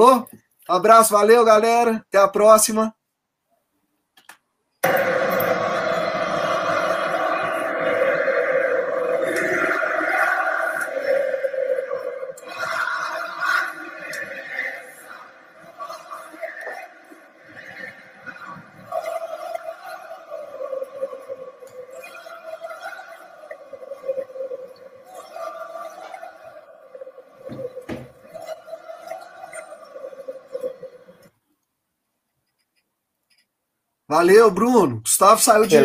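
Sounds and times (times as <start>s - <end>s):
speech: 0.0s - 3.0s, 34.2s - 35.8s
large stadium crowd singing in a jingle: 4.8s - 31.3s.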